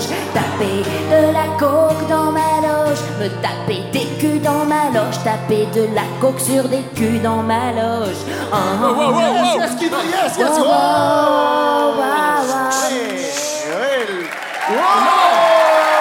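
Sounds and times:
laughter: 0.0 - 1.3, 8.5 - 15.6
speech: 0.4 - 15.8
voices and cheering: 9.1 - 15.9
audience clapping: 12.3 - 15.9.

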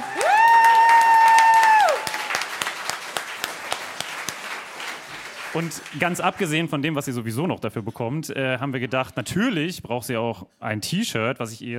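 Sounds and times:
loud sustained high-pitched whoop: 0.0 - 2.5
live audience applauding: 0.0 - 6.9
speech: 5.6 - 11.7.

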